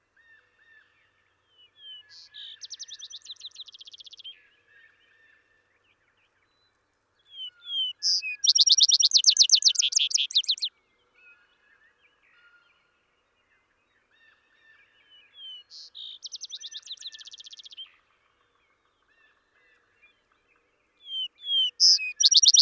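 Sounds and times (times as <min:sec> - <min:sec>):
Vesper sparrow songs of slurred whistles and a fast bright trill: 0:00.7 - 0:05.5, 0:06.4 - 0:12.8, 0:14.2 - 0:18.0, 0:21.0 - 0:22.6.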